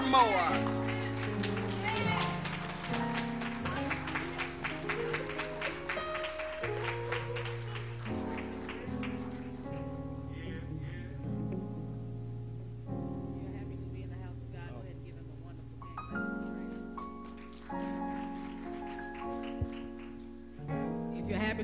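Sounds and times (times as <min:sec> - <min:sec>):
crowd clapping hands in praise: 0:00.0 - 0:10.0, 0:16.3 - 0:20.3
sustained organ chords: 0:00.0 - 0:21.6.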